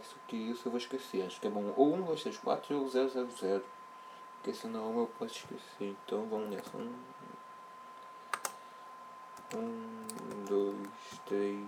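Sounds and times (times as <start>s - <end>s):
speech: 0.3s - 3.8s, 4.4s - 7.3s, 9.5s - 11.6s
digits typed on a computer keyboard: 6.4s - 6.8s, 8.3s - 8.6s, 9.4s - 11.3s.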